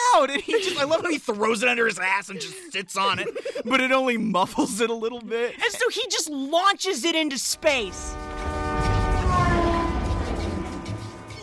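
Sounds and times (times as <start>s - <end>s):
laughter: 0.2s - 1.3s, 2.0s - 4.8s
speech: 0.2s - 8.2s
car horn blaring with Doppler effect: 7.5s - 11.4s
low rumble: 7.6s - 11.4s.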